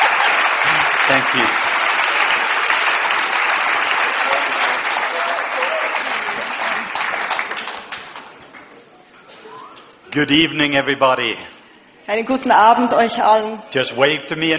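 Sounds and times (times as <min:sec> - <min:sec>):
audience applauding: 0:00.0 - 0:09.1
speech: 0:01.1 - 0:01.7, 0:10.1 - 0:14.5.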